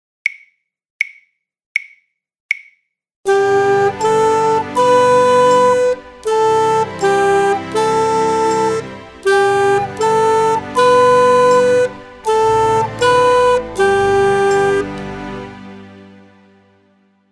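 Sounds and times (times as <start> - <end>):
full performance: 3.3 - 16.8.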